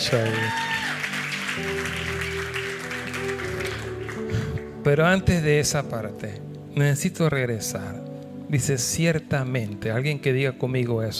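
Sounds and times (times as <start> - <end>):
speech: 0.0 - 0.7, 1.6 - 2.5, 4.8 - 11.1
crowd applauding: 0.0 - 4.8
sustained keyboard-like music chords: 0.0 - 11.1.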